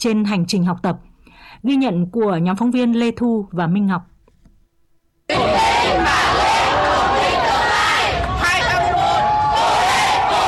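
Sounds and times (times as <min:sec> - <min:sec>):
speech: 0:00.0 - 0:04.1
cheering applause for exam candidates: 0:05.3 - 0:10.4.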